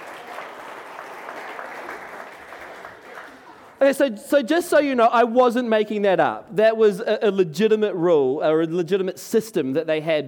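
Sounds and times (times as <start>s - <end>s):
applause: 0.0s - 3.8s
speech: 3.8s - 10.2s.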